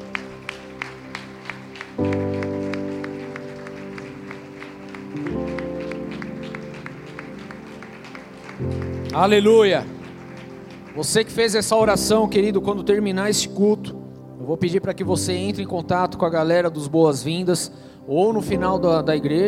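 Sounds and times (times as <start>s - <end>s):
audience applause: 0.0s - 11.8s
speech: 9.2s - 9.9s, 11.0s - 19.4s.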